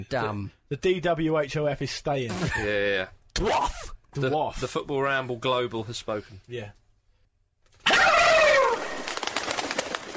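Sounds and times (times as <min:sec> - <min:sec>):
speech: 0:00.0 - 0:06.8
turkeys gobbling: 0:07.9 - 0:09.1.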